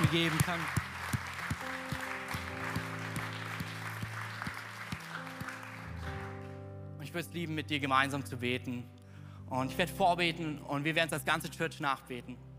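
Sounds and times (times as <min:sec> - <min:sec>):
audience applause: 0:00.0 - 0:06.6
speech: 0:00.1 - 0:00.9, 0:07.1 - 0:12.5.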